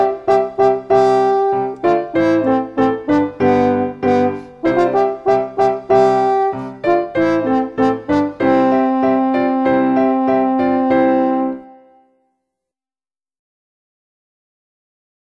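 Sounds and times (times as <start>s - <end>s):
French horn solo: 0.0s - 12.2s
piano accompaniment: 0.0s - 12.2s.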